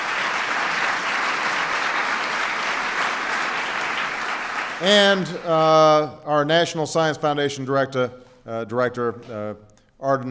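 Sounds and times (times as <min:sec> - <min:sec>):
audience applause: 0:00.0 - 0:05.6
speech: 0:04.8 - 0:10.2.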